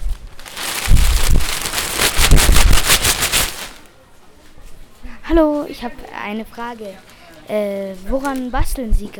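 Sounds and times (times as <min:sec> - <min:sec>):
large sheet of paper being cut: 0:01.6 - 0:03.8
speech: 0:05.3 - 0:09.1.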